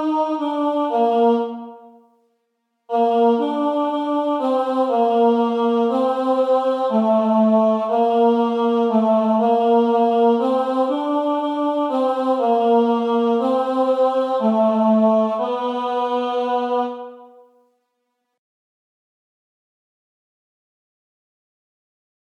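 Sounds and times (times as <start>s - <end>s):
tenor singing: 0.0s - 2.0s, 2.9s - 17.4s.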